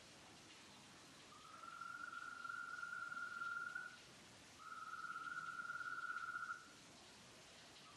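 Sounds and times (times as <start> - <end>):
Bufotes oblongus: 1.4 - 3.9, 4.6 - 6.7.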